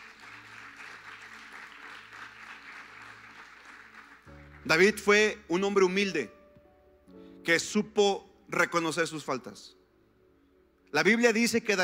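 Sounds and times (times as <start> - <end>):
audience applauding: 0.0 - 5.4
speech: 4.6 - 6.4, 7.4 - 9.8, 10.9 - 11.8.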